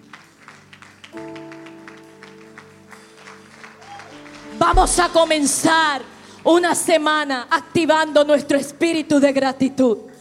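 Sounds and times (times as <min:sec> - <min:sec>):
audience applauding: 0:00.0 - 0:06.4
speech: 0:04.6 - 0:10.1.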